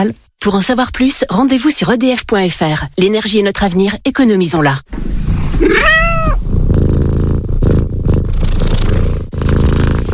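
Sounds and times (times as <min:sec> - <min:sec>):
speech: 0:00.0 - 0:06.0
cat purring: 0:04.9 - 0:10.1
cat meowing: 0:05.6 - 0:06.4.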